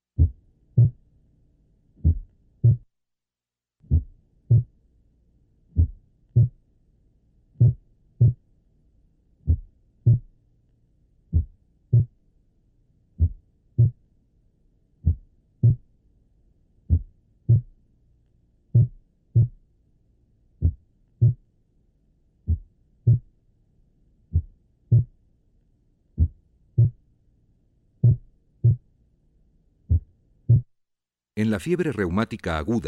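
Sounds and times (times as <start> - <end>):
slow heartbeat through a stethoscope in complete heart block: 0.2 - 1.0, 2.0 - 2.9, 3.8 - 4.8, 5.7 - 6.6, 7.6 - 8.5, 9.4 - 10.4, 11.3 - 12.2, 13.2 - 14.1, 15.0 - 15.9, 16.8 - 17.8, 18.7 - 19.6, 20.6 - 21.5, 22.4 - 23.4, 24.3 - 25.2, 26.1 - 27.1, 28.0 - 28.9, 29.8 - 30.8
speech: 31.4 - 32.8.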